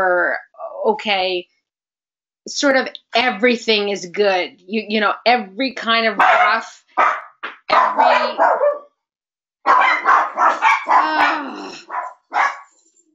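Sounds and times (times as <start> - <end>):
speech: 0.0 - 1.5, 2.4 - 8.8
two dogs barking at night inside a sleeping house: 6.2 - 8.9, 9.7 - 12.8.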